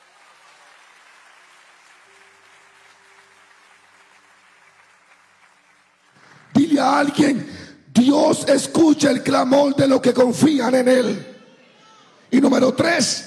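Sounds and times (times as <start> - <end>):
audience applauding: 0.0 - 7.2
speech: 6.8 - 11.3, 12.3 - 13.2.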